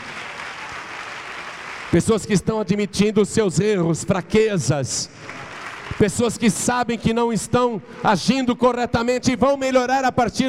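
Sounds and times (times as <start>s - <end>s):
audience applauding: 0.0s - 2.0s, 5.2s - 6.1s
speech: 1.9s - 10.4s.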